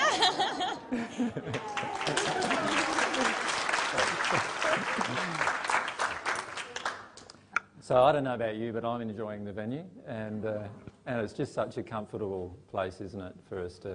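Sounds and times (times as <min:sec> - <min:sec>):
laughter: 0:00.0 - 0:05.4
speech: 0:00.3 - 0:02.2, 0:07.9 - 0:13.9
audience clapping: 0:01.3 - 0:07.4.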